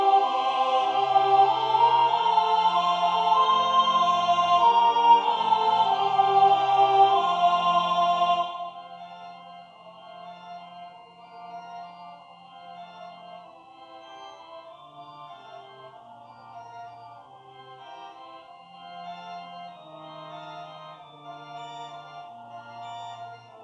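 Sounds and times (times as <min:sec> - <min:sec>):
soprano singing: 0:00.0 - 0:09.4.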